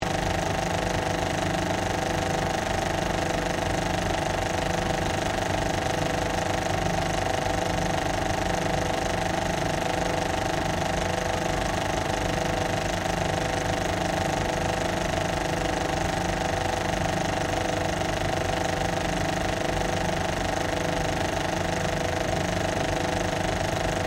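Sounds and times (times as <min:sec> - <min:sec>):
modern 35mm cinema projector operating: 0:00.0 - 0:24.0.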